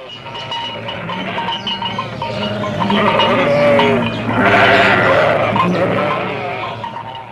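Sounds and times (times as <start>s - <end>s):
cattle lowing: 0.0s - 7.3s
sheep and goats bleating: 0.1s - 7.3s.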